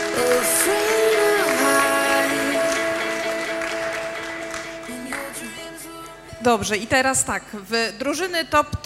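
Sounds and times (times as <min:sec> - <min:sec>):
audience applause: 0:00.0 - 0:05.9
tonal music: 0:00.0 - 0:06.9
speech: 0:06.4 - 0:08.8.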